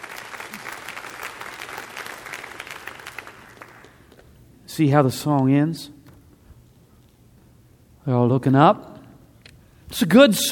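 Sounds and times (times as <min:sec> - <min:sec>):
crowd applauding: 0:00.0 - 0:04.2
speech: 0:04.8 - 0:06.0, 0:08.1 - 0:08.9, 0:10.0 - 0:10.5.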